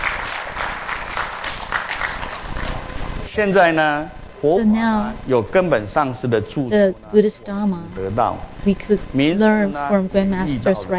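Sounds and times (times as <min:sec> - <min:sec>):
audience applause: 0:00.0 - 0:02.8
speech: 0:03.4 - 0:10.9.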